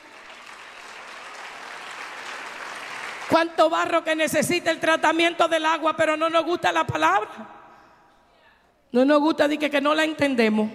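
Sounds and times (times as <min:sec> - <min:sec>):
crowd clapping: 0:00.0 - 0:03.6
speech: 0:03.3 - 0:07.6, 0:08.9 - 0:10.7.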